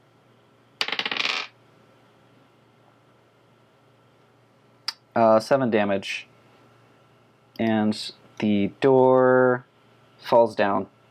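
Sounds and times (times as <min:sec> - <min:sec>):
dice clattering onto a hard surface: 0:00.8 - 0:01.5
speech: 0:05.2 - 0:06.3, 0:07.6 - 0:11.0.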